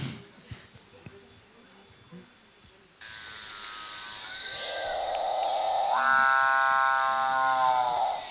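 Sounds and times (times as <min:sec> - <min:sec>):
bare-necked fruitcrow loud buzzing call: 0:03.0 - 0:08.2.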